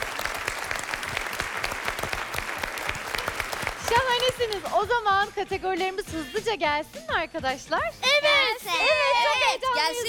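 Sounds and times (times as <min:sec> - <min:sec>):
group clapping: 0:00.0 - 0:04.9
speech: 0:04.3 - 0:10.0.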